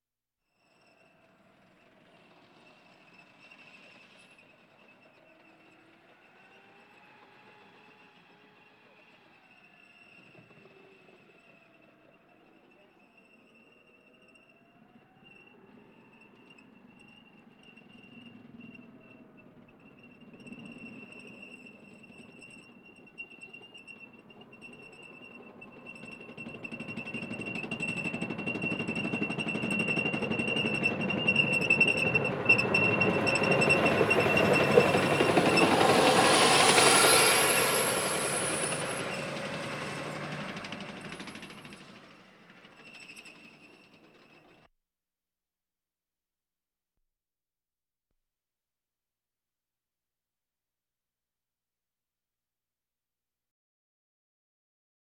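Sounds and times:
military vehicles: 0:00.8 - 0:44.7.

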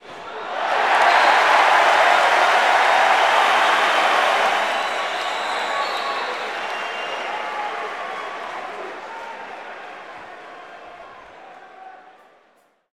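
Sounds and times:
basketball crowd cheering: 0:00.0 - 0:12.6.

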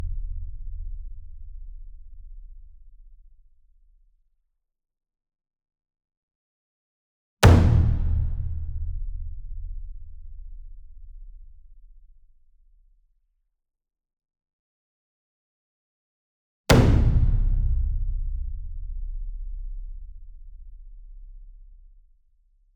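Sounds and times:
60 inch taiko drum hit hard with medium beater: 0:07.4 - 0:09.2, 0:16.7 - 0:18.6.

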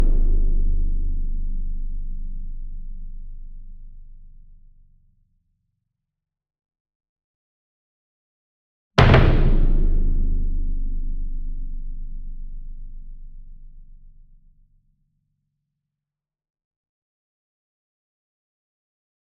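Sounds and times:
40 inch concert bass drum hit with double soft beater: 0:00.0 - 0:04.1, 0:09.0 - 0:14.0.

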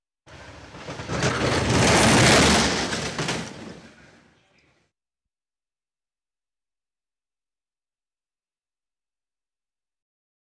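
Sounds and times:
machinery trucks moving: 0:00.3 - 0:04.6.

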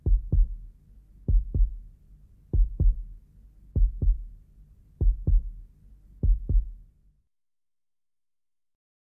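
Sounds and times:
heartbeat: 0:00.0 - 0:00.7, 0:01.3 - 0:01.9, 0:02.5 - 0:03.2, 0:03.8 - 0:04.4, 0:05.0 - 0:06.8.

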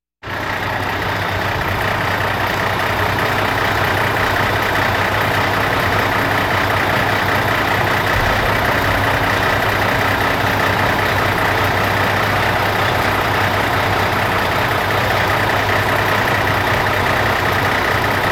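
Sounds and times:
machinery trucks moving: 0:00.2 - 0:18.2.

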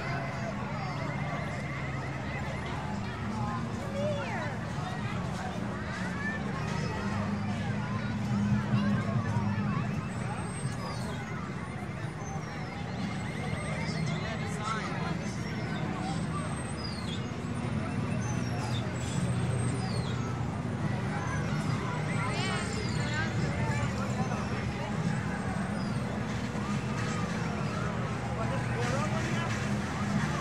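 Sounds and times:
amusement park midway crowd: 0:00.0 - 0:30.4.

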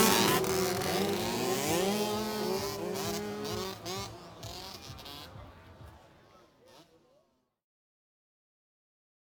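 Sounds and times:
motorbike: 0:00.0 - 0:07.2
street traffic: 0:00.0 - 0:07.2.

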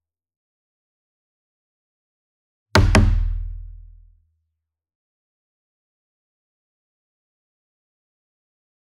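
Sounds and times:
single drum strikes with double hard beater: 0:02.8 - 0:03.9.

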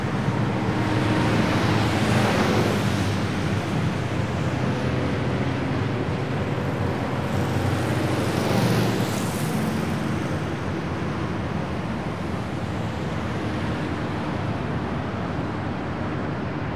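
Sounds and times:
highway traffic: 0:00.0 - 0:16.7.

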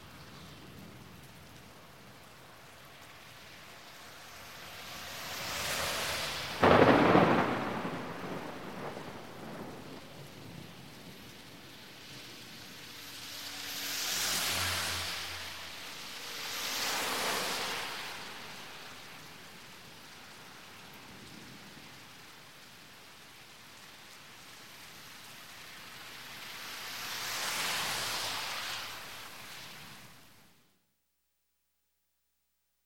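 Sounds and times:
rain: 0:00.0 - 0:30.8
light highway traffic at 50-60 MPH: 0:01.0 - 0:08.9, 0:11.0 - 0:20.9, 0:24.6 - 0:30.4
thunder: 0:05.8 - 0:11.3.

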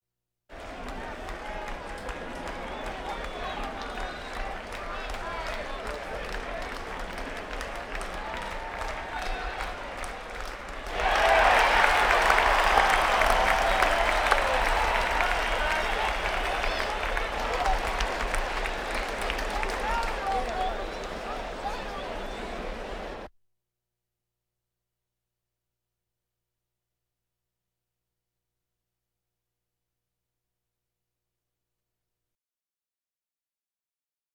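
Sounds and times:
crowds: 0:00.5 - 0:23.3.

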